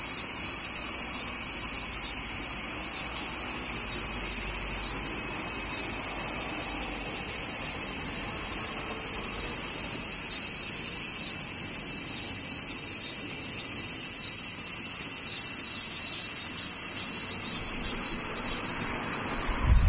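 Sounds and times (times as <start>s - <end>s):
cicadas droning: 0.0s - 19.8s.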